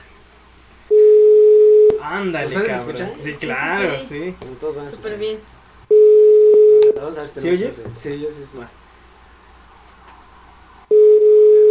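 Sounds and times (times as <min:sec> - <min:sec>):
phone call tone going to voicemail: 0:00.9 - 0:02.0, 0:05.9 - 0:07.0, 0:10.9 - 0:11.6
speech: 0:02.1 - 0:05.6, 0:07.0 - 0:08.8.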